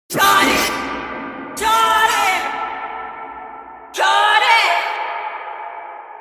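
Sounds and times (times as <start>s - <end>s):
ultra echo effect: 0.1s - 6.1s.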